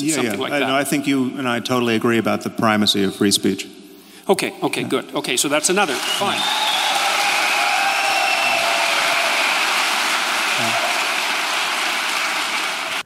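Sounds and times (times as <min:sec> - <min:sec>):
speech: 0:00.0 - 0:06.8
crowd applause: 0:05.5 - 0:13.0.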